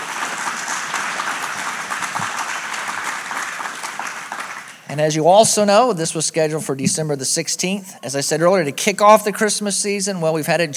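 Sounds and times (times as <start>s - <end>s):
audience applause: 0.0s - 4.8s
speech: 4.9s - 10.7s.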